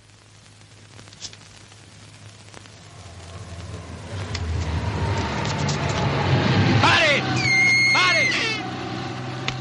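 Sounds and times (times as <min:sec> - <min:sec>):
car passing on a street: 0:02.9 - 0:09.5
brief high-pitched squeal: 0:07.4 - 0:08.5.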